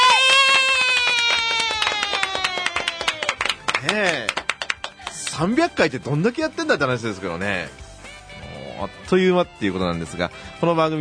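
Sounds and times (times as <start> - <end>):
applause: 0.0 - 5.6
speech: 3.8 - 4.4, 5.4 - 7.8, 8.8 - 10.9.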